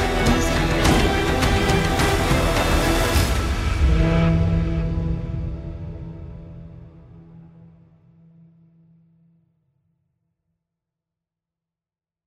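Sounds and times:
Scandinavian epic cinematic music: 0.0s - 7.9s.

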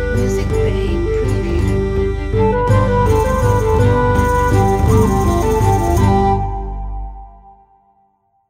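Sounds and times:
Celtic logo jingle: 0.2s - 7.7s.

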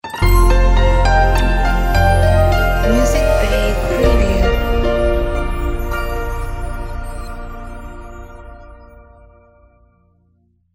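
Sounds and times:
piano logo jingle: 0.0s - 9.8s.

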